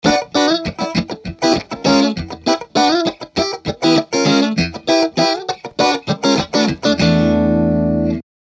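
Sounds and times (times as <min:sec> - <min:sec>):
funk music: 0:00.0 - 0:08.2.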